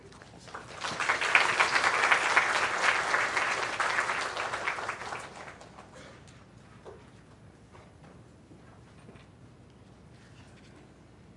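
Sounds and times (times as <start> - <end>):
welcoming applause from audience: 0.0 - 6.0.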